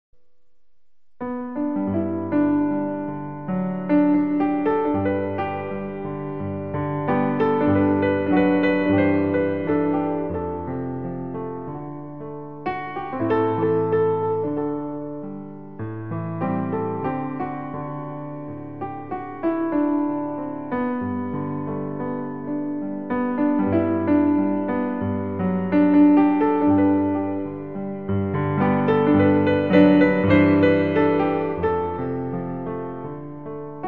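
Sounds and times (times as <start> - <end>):
showtime piano music: 1.2 - 33.8.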